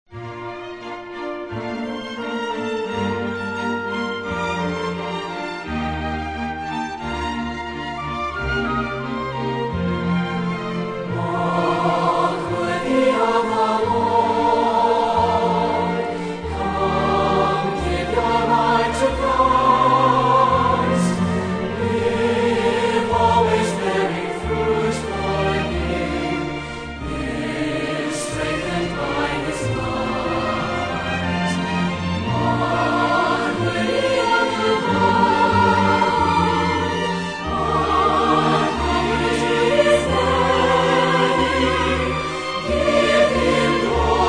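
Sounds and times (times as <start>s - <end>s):
orchestra playing: 0.1s - 44.2s
singers: 11.1s - 44.2s.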